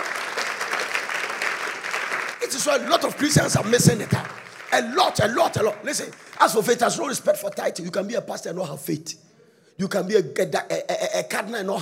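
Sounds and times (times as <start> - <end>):
audience clapping: 0.0 - 7.8
speech: 2.5 - 11.8.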